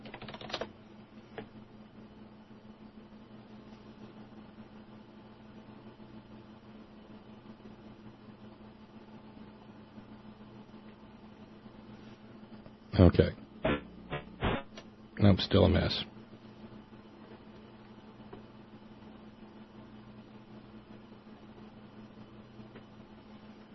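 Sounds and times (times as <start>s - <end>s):
typing on a computer keyboard: 0.0s - 0.7s
speech: 13.0s - 13.4s, 15.2s - 16.1s.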